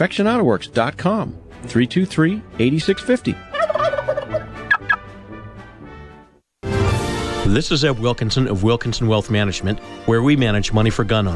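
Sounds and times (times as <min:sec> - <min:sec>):
speech: 0:00.0 - 0:03.5, 0:07.5 - 0:11.3
turkeys gobbling: 0:02.9 - 0:05.1.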